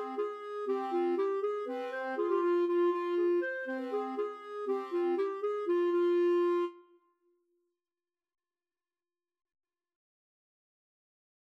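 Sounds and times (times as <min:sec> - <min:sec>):
bulgarish clarinet duet: 0:00.0 - 0:07.0.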